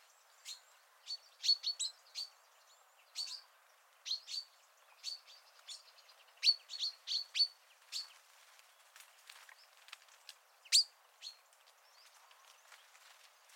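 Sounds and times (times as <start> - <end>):
common chaffinch Fringilla coelebs giving short sharp high chirps: 0.0 - 8.2, 10.6 - 12.8.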